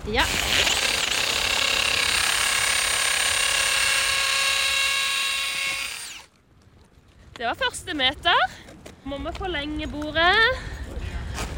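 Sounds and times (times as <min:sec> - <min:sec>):
speech: 0:00.0 - 0:00.5, 0:07.4 - 0:10.7
power drill boring into ice: 0:00.0 - 0:06.3.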